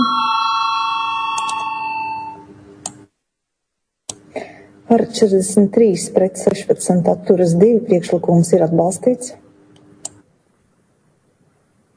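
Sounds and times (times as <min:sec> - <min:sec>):
parliament voting bell ringing: 0:00.0 - 0:02.6
speech: 0:04.9 - 0:09.4.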